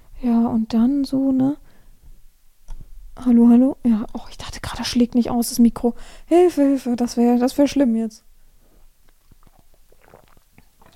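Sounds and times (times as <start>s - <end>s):
speech: 0.5s - 1.6s, 3.2s - 8.3s
person sipping water: 8.8s - 10.9s
gulps and swallowing: 9.1s - 10.9s.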